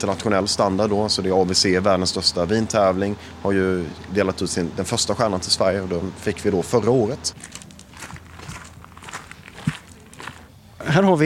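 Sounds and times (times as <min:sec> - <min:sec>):
speech: 0:00.0 - 0:07.6, 0:10.9 - 0:11.2
footsteps walking through a pioneer vineyard planting at a Swedish vineyard: 0:07.4 - 0:10.5.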